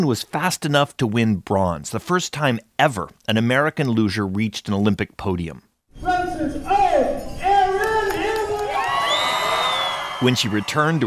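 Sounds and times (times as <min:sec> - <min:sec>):
speech: 0:00.0 - 0:06.7, 0:10.2 - 0:11.0
large crowd cheering and shouting in a high school gym: 0:06.7 - 0:11.0
applause in a high school gym: 0:07.8 - 0:11.0
high-pitched whoops: 0:07.8 - 0:11.0.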